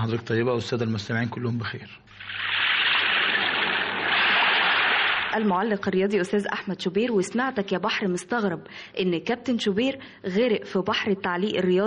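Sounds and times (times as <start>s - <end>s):
speech: 0.0s - 2.5s, 5.3s - 11.8s
sea waves: 2.1s - 5.7s.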